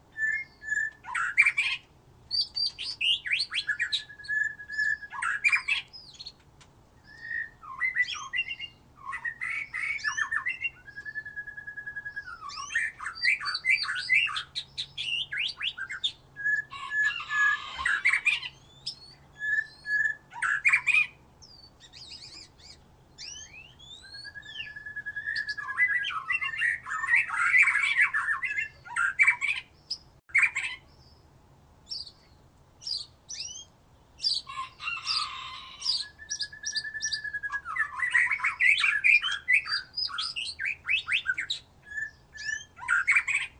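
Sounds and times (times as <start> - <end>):
White-rumped shama singing: 0.1 - 6.4, 7.0 - 31.2, 31.9 - 43.5.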